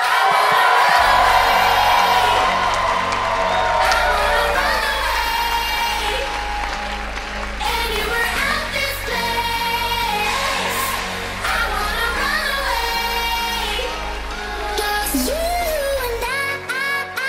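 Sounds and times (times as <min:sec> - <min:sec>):
audience clapping and cheering for a comedian's entrance: 0:00.0 - 0:16.4.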